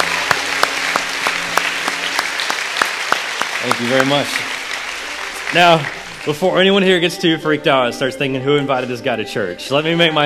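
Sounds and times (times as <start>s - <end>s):
audience applause: 0.0s - 7.1s
speech: 3.7s - 4.5s, 5.5s - 10.2s.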